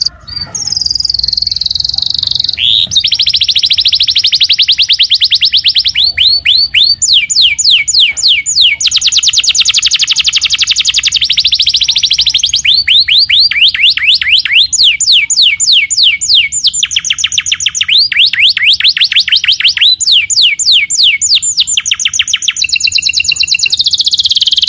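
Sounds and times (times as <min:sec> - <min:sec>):
canary song: 0:00.0 - 0:24.6.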